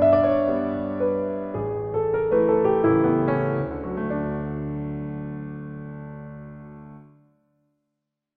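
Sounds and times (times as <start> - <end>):
waltz music: 0.0 - 5.4.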